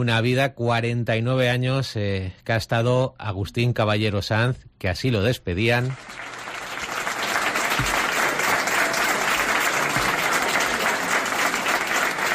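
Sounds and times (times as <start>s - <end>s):
speech: 0.0s - 6.3s
sustained ovation from a sizable crowd: 5.8s - 12.3s.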